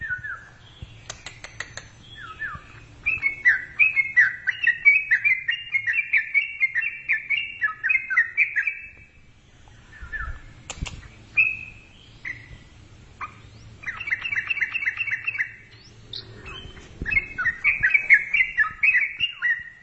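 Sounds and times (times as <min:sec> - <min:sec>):
Yellow-vented bulbul song with fast sharp chirping notes: 0:00.0 - 0:19.8.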